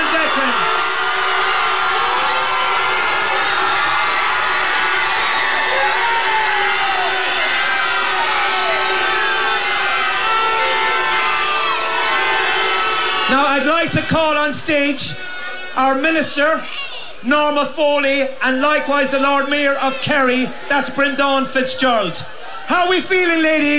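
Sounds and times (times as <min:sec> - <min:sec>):
crowd applause: 0:00.0 - 0:14.4
speech: 0:14.0 - 0:23.7.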